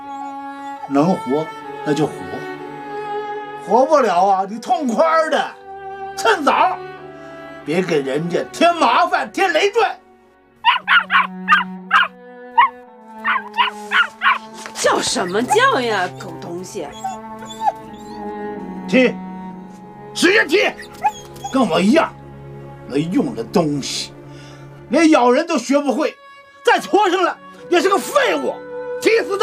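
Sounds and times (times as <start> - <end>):
speech: 0.9 - 2.5, 3.7 - 5.6, 6.2 - 6.9, 7.7 - 10.0, 11.0 - 11.5, 15.0 - 17.5, 18.9 - 19.2, 20.2 - 22.2, 22.9 - 24.1, 24.9 - 29.4
small dog barking and whimpering: 10.6 - 14.4, 16.9 - 18.2, 20.8 - 21.6.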